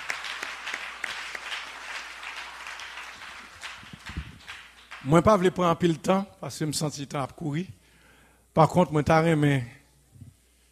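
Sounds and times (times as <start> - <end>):
audience applause: 0.0 - 5.2
speech: 5.0 - 7.8, 8.6 - 9.8.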